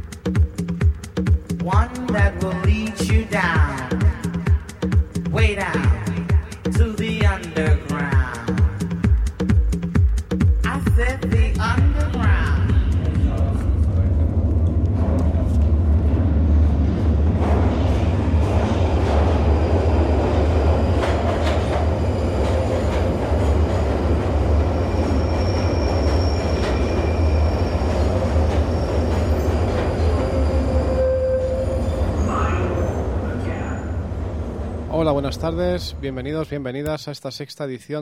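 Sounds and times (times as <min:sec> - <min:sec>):
commuter rail train running with heavy rumble: 0:00.0 - 0:36.7
speech: 0:01.6 - 0:04.0, 0:05.4 - 0:05.9, 0:35.1 - 0:38.0
train wheels squealing: 0:19.4 - 0:34.9.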